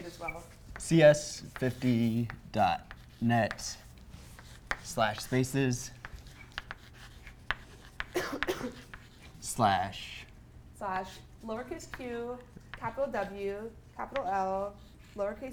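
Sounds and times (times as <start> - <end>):
marker writing a web address on a board: 0.0 - 9.5, 11.0 - 15.4
speech: 0.2 - 3.8, 4.9 - 6.0, 9.6 - 10.2, 10.8 - 15.5.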